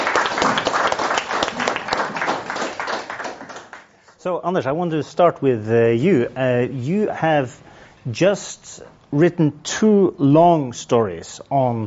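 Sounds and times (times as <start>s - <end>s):
audience round of applause: 0.0s - 3.9s
speech: 4.2s - 11.8s.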